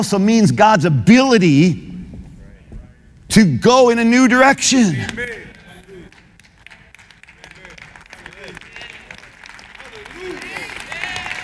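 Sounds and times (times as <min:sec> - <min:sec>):
speech: 0:00.0 - 0:01.9, 0:03.3 - 0:05.5
audience applause: 0:05.1 - 0:11.4.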